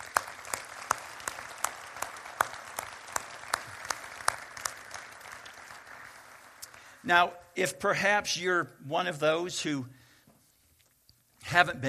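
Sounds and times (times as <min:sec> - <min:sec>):
audience applause: 0:00.0 - 0:07.0
speech: 0:07.1 - 0:10.0, 0:11.5 - 0:11.8.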